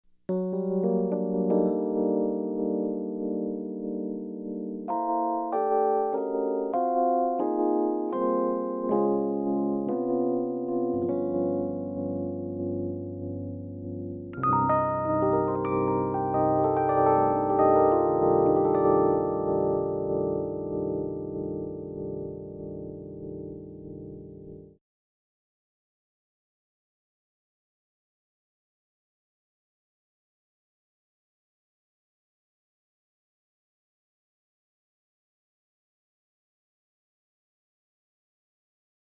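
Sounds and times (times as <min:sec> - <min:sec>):
Rhodes electric piano: 0:00.3 - 0:24.8.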